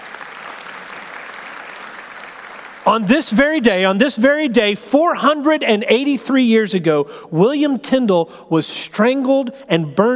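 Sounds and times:
audience applause: 0.0s - 3.1s
speech: 2.9s - 10.1s.

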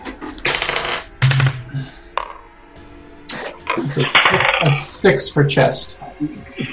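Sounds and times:
dice rolling on a hard tabletop: 0.4s - 1.4s
speech: 3.8s - 6.7s.

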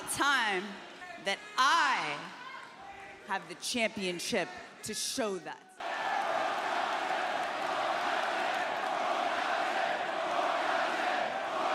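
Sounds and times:
speech: 0.2s - 2.4s, 3.3s - 5.7s
crowd chanting: 5.8s - 11.7s.

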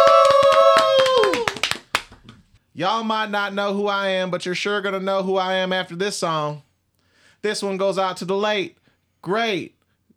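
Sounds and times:
audience applause: 0.0s - 2.1s
speech: 2.8s - 6.7s, 7.4s - 9.8s.

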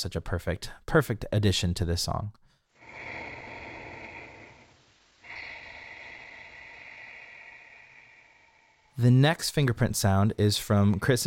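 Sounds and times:
speech: 0.0s - 2.4s, 9.0s - 11.2s
yoga breath imitating ocean sound: 2.6s - 9.0s.

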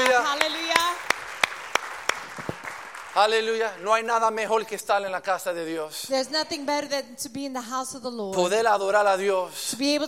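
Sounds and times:
audience applauding loudly: 0.0s - 4.7s
speech: 3.2s - 10.0s.

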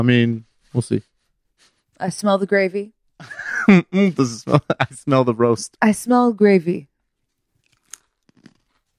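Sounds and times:
speech: 0.0s - 6.9s
laughter: 3.2s - 5.1s
person biting into and chewing a chip: 7.6s - 8.9s.

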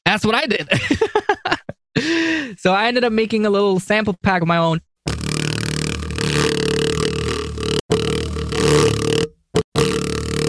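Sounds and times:
speech: 0.2s - 1.3s, 2.0s - 4.9s
distorted sub bass from paper fluttering on a speaker woofer: 5.1s - 10.4s.

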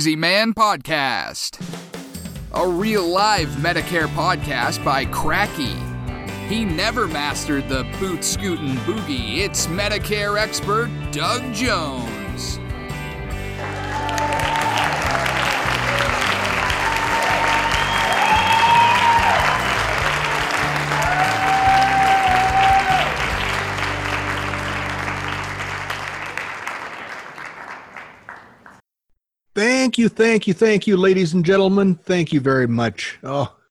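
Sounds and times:
speech: 0.0s - 1.9s, 2.5s - 5.9s, 6.5s - 12.6s, 29.8s - 33.6s
sustained audience applause from a crowd: 13.5s - 28.8s
whistles: 15.6s - 19.8s.

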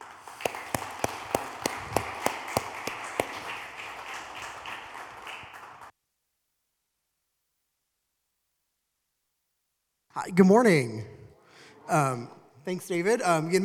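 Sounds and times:
audience applause welcoming a speaker: 0.0s - 5.9s
speech: 10.2s - 11.1s, 11.9s - 13.6s.

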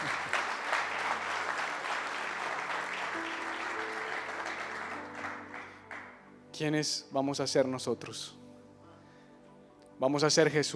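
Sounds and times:
audience applause: 0.0s - 6.2s
speech: 6.6s - 8.4s, 10.0s - 10.7s.

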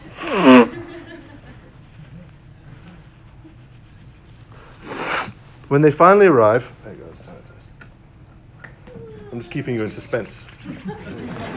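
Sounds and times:
person blowing nose: 0.0s - 1.0s, 4.8s - 5.4s, 9.8s - 11.2s
laughter: 0.0s - 1.7s, 9.8s - 11.5s
speech: 5.7s - 7.5s, 9.4s - 11.5s.

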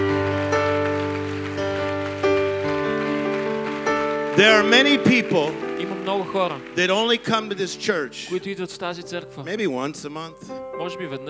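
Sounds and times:
audience clapping: 0.0s - 8.5s
sustained music with held chords: 0.0s - 11.2s
speech: 4.4s - 11.2s.

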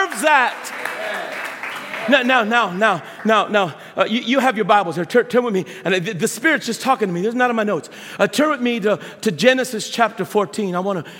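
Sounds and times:
audience applause: 0.0s - 3.0s
speech: 0.2s - 1.2s, 2.1s - 11.1s.

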